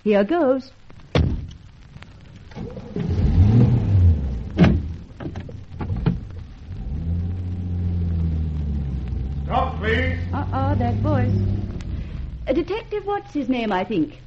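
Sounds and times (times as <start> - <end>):
speech: 0.0 - 0.8, 9.8 - 11.6, 12.5 - 14.2
car engine cranking, idling and revving as the car pulls away: 1.2 - 14.2
car door clunk: 4.6 - 6.3.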